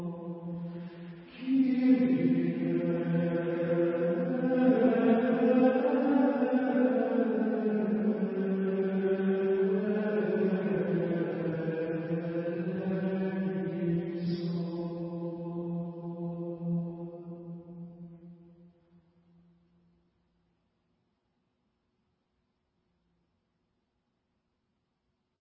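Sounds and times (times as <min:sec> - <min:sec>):
Gregorian chant for the dead: 0:00.0 - 0:18.6.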